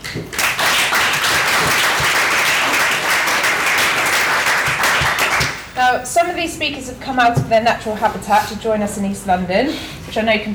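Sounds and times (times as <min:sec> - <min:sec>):
audience applause: 0:00.4 - 0:06.4
speech: 0:05.9 - 0:10.5.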